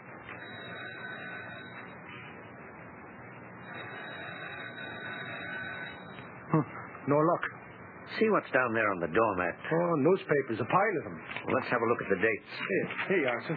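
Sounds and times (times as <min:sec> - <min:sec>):
doorbell ringing: 0:00.3 - 0:02.0, 0:03.6 - 0:06.3
speech: 0:06.5 - 0:13.5.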